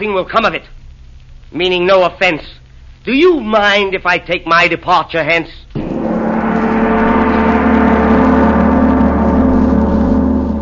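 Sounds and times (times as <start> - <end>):
speech: 0.0 - 0.8, 1.5 - 5.7
big brass gong struck: 5.8 - 10.6.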